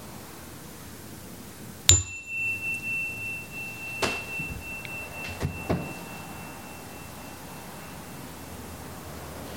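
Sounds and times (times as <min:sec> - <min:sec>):
bell ringing: 0:01.9 - 0:09.4.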